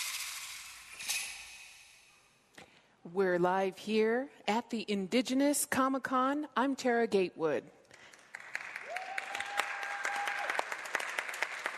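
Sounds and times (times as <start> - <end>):
speech: 3.1 - 7.8
live audience applauding at the Indigenous Comic-Con in Seminar Hall: 7.9 - 11.7.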